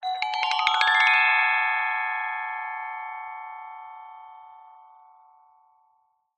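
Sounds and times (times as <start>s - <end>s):
small gender gamelan upward glissando: 0.0s - 1.6s.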